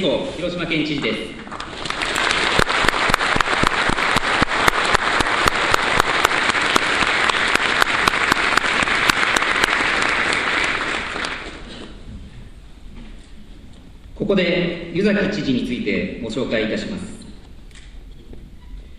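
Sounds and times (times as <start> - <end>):
speech: 0.0 - 1.6, 14.3 - 17.2
audience applause welcoming a speaker: 1.5 - 11.7.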